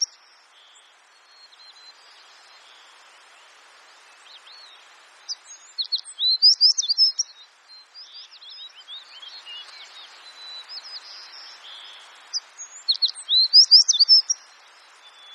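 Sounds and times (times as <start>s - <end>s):
American tree sparrow singing: 0.0s - 0.2s, 5.3s - 14.4s
bird chorus: 0.0s - 15.3s.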